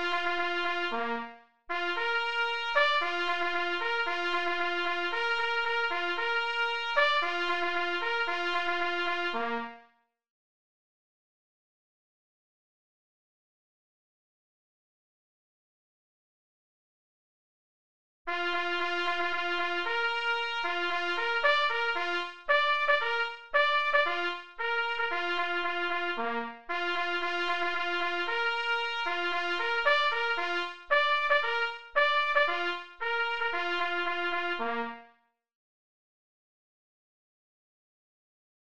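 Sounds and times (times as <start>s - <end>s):
signal horn at 114 bpm: 0.0s - 9.8s, 18.3s - 35.1s.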